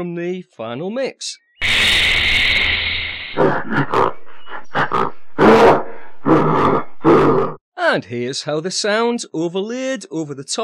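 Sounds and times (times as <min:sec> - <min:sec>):
speech: 0:00.0 - 0:01.4, 0:03.3 - 0:04.2, 0:07.0 - 0:10.6
gorilla-type animal sounds: 0:01.6 - 0:07.6.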